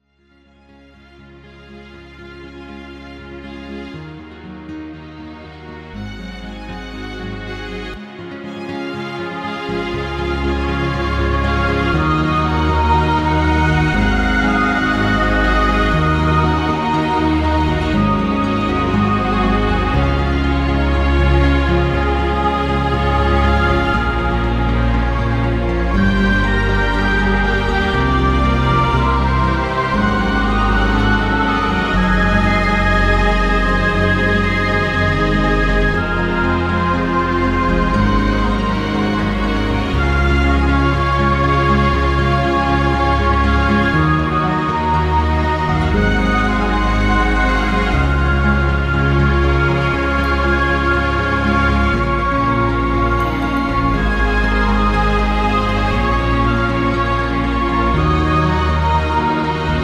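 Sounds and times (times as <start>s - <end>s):
astral sound background music: 0.2s - 59.8s.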